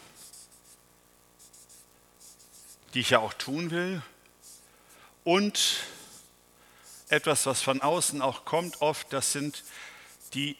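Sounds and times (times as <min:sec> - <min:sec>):
pen scratching on paper writing a word: 0:00.0 - 0:00.8, 0:01.4 - 0:02.9, 0:04.4 - 0:04.7, 0:06.1 - 0:10.4
speech: 0:02.9 - 0:04.1, 0:05.2 - 0:05.9, 0:07.1 - 0:10.5.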